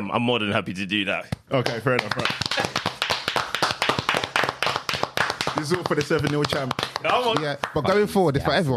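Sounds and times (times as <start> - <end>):
speech: 0.0 - 2.8, 5.6 - 8.7
group clapping: 1.4 - 8.2.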